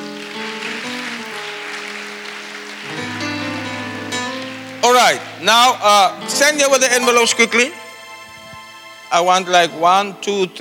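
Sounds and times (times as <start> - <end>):
audience applause: 0.0 - 6.6
speech: 4.8 - 7.8, 9.1 - 10.6.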